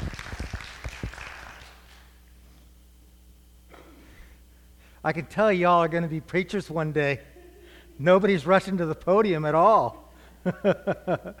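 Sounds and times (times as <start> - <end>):
audience clapping: 0.0 - 2.2
speech: 5.0 - 7.3, 8.0 - 11.3
laughter: 7.3 - 8.2, 10.4 - 11.3.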